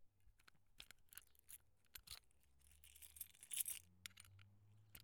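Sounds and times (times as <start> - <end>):
lock picking: 0.8 - 4.2.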